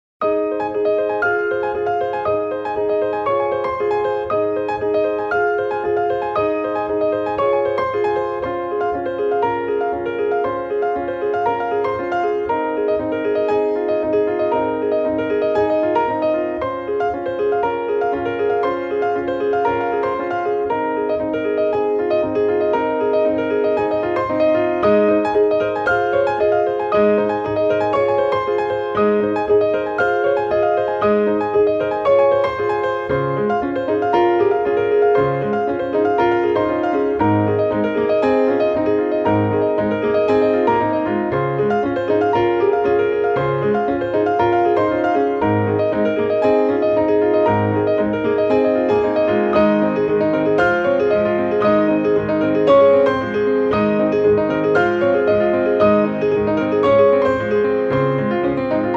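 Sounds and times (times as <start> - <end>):
two pianos: 0.2 - 58.9.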